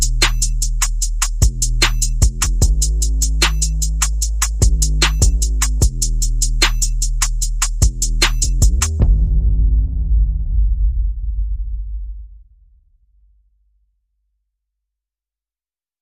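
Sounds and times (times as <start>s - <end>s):
percussion: 0.0s - 9.5s
bass: 0.0s - 13.0s.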